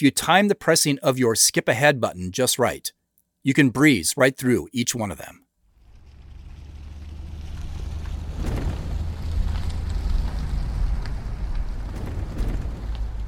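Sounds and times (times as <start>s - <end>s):
speech: 0.0s - 5.4s
truck engine running: 5.8s - 13.2s.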